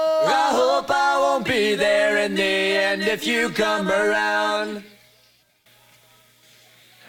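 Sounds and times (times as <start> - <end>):
person singing: 0.2 - 5.0.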